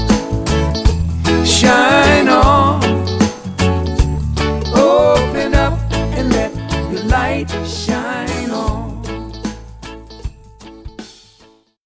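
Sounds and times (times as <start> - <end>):
bouncy reggae music: 0.0 - 11.6.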